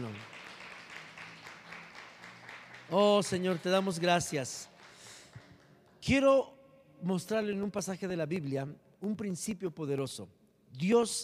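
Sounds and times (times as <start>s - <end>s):
audience applause: 0.0s - 5.7s
speech: 2.9s - 4.7s, 6.1s - 11.2s.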